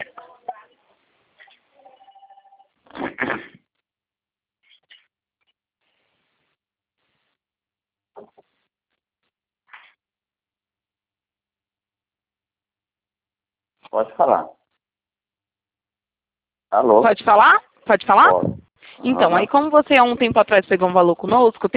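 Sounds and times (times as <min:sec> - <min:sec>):
telephone ringing heard through a phone line: 0:01.8 - 0:02.8
speech: 0:14.0 - 0:14.6, 0:16.7 - 0:21.7.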